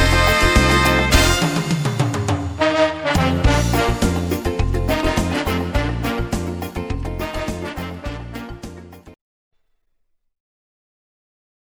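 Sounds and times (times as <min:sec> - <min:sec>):
samba music: 0:00.0 - 0:09.2.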